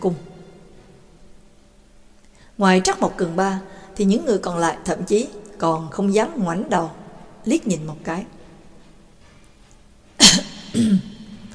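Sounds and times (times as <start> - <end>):
speech: 0.0 - 0.3, 2.6 - 8.4
throat clearing: 10.2 - 11.5.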